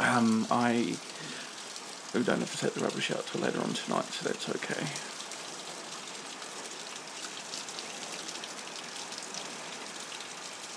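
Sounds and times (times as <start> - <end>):
steady dense rain during a thunderstorm: 0.0 - 10.7
speech: 0.2 - 1.2, 2.1 - 5.2.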